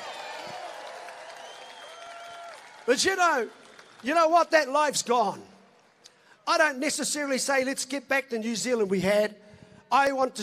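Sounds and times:
crowd clapping for the farmers: 0.0 - 4.8
speech: 2.9 - 5.5, 6.4 - 10.4.

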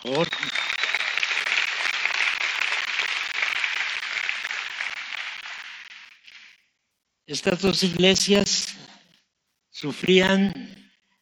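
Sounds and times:
speech: 0.0 - 0.6, 7.3 - 8.8, 9.8 - 10.6
audience applause: 0.0 - 6.5.

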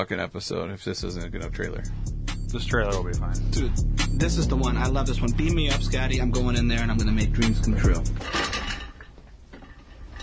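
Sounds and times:
speech: 0.0 - 8.6
chair being kicked: 8.1 - 10.2.

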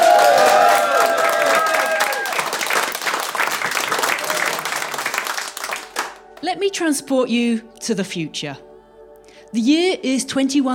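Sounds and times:
audience applause greeting a speaker at a live talk event: 0.0 - 6.2
speech: 6.6 - 8.7, 9.5 - 10.7.

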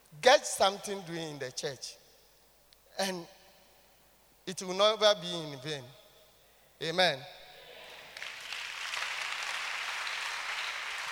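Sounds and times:
speech: 0.2 - 2.0, 3.0 - 3.4, 4.5 - 6.0, 6.8 - 7.4
audience clapping: 8.1 - 11.1.

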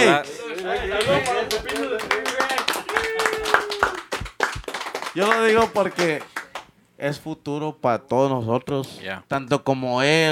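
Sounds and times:
speech: 0.0 - 2.1, 5.2 - 6.3, 7.0 - 10.3
excited voices: 0.0 - 4.2
people clapping: 0.0 - 6.8.

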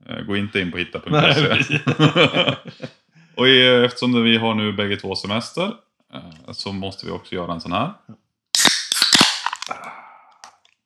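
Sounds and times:
laughter: 0.1 - 7.9
speech: 0.3 - 8.1
beer cans cracked open with fizzing hiss: 8.6 - 9.7.

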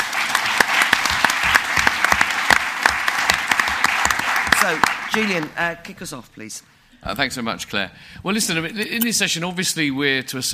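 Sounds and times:
audience applause welcoming a guest: 0.0 - 5.6
speech: 4.6 - 10.5.

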